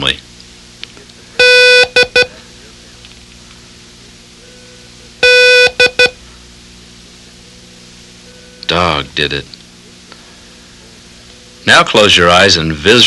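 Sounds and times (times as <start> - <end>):
speech: 0.0 - 0.3, 8.7 - 9.6, 11.6 - 13.0
faint hum: 0.0 - 13.0
buzzy code signal beeps: 1.4 - 2.3, 4.4 - 6.2.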